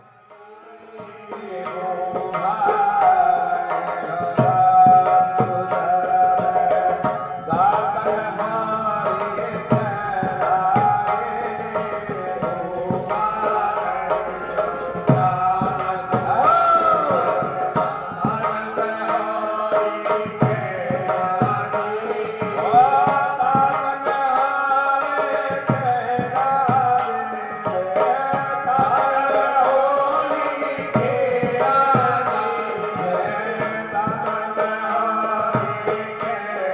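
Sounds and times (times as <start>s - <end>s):
qawwali music: 0.0s - 36.7s.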